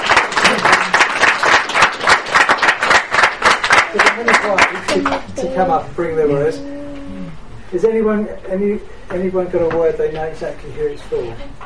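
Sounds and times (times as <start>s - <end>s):
audience clapping: 0.0s - 5.4s
speech: 4.5s - 6.8s, 7.7s - 11.6s.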